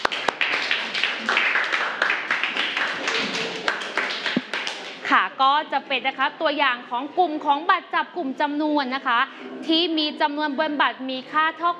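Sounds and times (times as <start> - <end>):
students clapping: 0.0 - 5.1
speech: 5.6 - 11.7.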